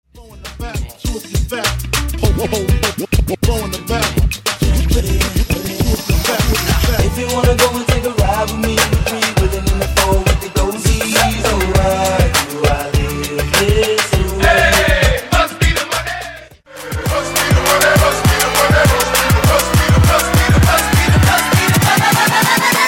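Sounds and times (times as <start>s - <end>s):
downtempo funk remix music: 0.2s - 22.7s.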